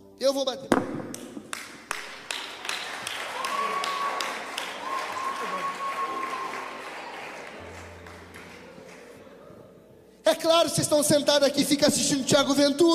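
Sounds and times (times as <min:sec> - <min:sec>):
speech: 0:00.2 - 0:01.4, 0:10.4 - 0:12.9
audience applause: 0:01.5 - 0:09.4
high whistle: 0:03.4 - 0:06.9.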